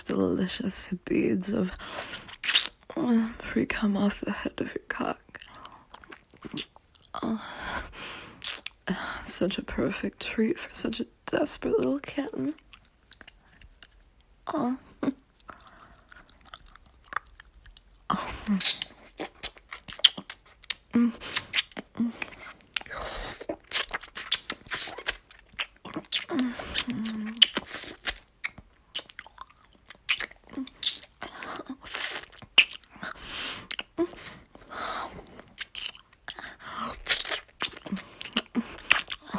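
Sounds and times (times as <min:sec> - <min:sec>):
speech: 0:00.0 - 0:02.3, 0:03.0 - 0:05.2, 0:06.4 - 0:08.0, 0:08.9 - 0:12.7, 0:14.5 - 0:15.6, 0:18.1 - 0:18.8, 0:21.0 - 0:21.4, 0:22.0 - 0:22.3
licking, wet mouth sounds: 0:02.0 - 0:02.8, 0:05.3 - 0:07.1, 0:08.4 - 0:08.8, 0:12.6 - 0:34.6, 0:35.2 - 0:39.3.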